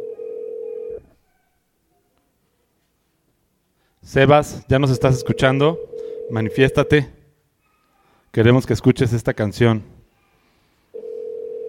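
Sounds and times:
telephone ringback tone on an outgoing call: 0:00.0 - 0:01.0, 0:05.0 - 0:07.0, 0:10.9 - 0:11.6
speech: 0:04.0 - 0:07.2, 0:08.3 - 0:10.0.

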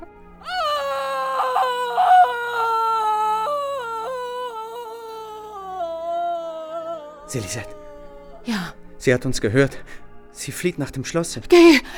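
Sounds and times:
woman weeping softly: 0:00.4 - 0:08.8
speech: 0:07.3 - 0:07.8, 0:08.4 - 0:11.9.

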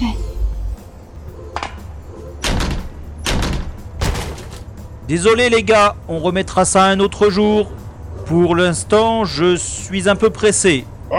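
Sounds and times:
door being battered in a radio drama: 0:02.4 - 0:04.7
speech: 0:05.1 - 0:11.1.

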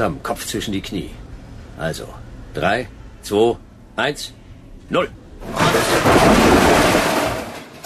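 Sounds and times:
speech: 0:00.0 - 0:01.2, 0:01.8 - 0:06.4
elevator emergency stop crash: 0:05.4 - 0:07.8.

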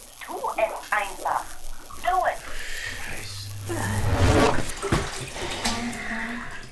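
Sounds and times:
voices talking: 0:00.2 - 0:04.1
water splashing as a radio is pulled out of water: 0:01.7 - 0:06.7.

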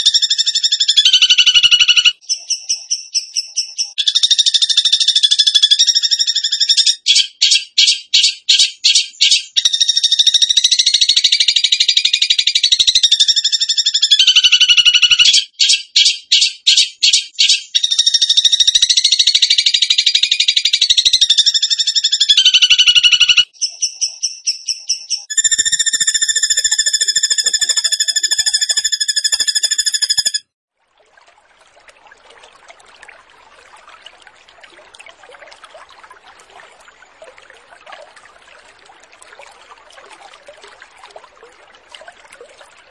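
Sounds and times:
bird trilling: 0:00.0 - 0:30.4.

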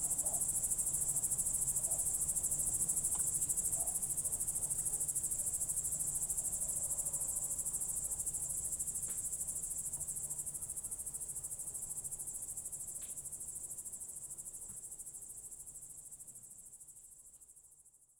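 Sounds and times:
crickets chirping: 0:00.0 - 0:17.7.

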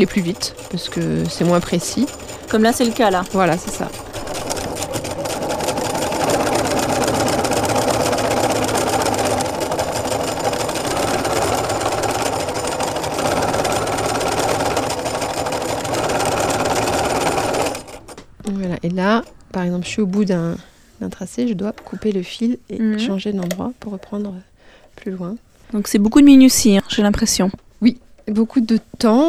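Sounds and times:
speech: 0:00.0 - 0:04.1, 0:19.0 - 0:29.2
sewing machine stitching thread to fill an area of fabric: 0:00.0 - 0:18.2.

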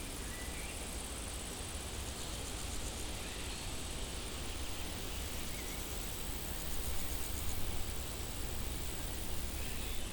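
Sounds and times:
insects stridulating in a dry meadow on a hot day: 0:00.1 - 0:10.1.

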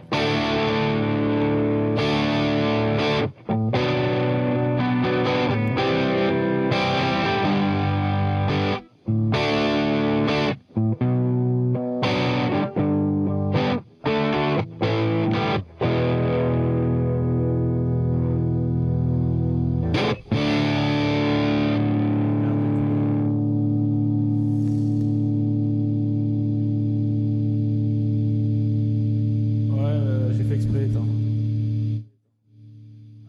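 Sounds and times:
heavily distorted electric guitar through an amp at 7 watts with reverb: 0:00.0 - 0:32.1.

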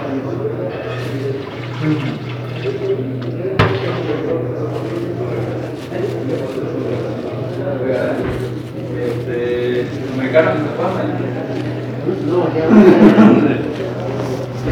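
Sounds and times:
indistinct voices murmuring: 0:00.0 - 0:14.6
water pouring into a bag at a shelter: 0:00.4 - 0:14.6
laughter: 0:09.0 - 0:14.6.

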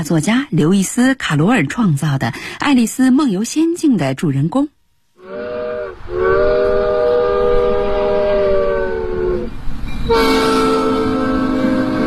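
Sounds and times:
speech: 0:00.0 - 0:04.8
small two-car tourist train horn blasts on a track circling a building: 0:05.2 - 0:12.0.

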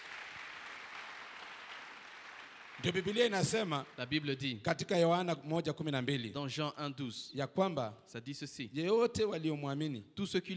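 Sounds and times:
congregation clapping during a Sunday church service: 0:00.0 - 0:05.2
speech: 0:02.8 - 0:10.5.

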